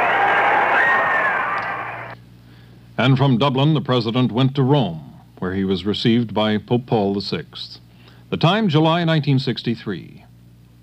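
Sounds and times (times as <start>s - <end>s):
large crowd in Dublin cheering President Kennedy in 1963: 0.0s - 2.2s
speech: 3.0s - 10.2s.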